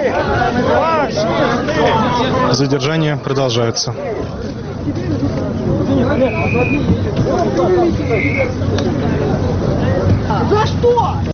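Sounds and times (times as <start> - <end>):
crowd shouting in protest: 0.0 - 2.6, 5.1 - 11.3
speech: 0.0 - 9.4, 10.2 - 11.3.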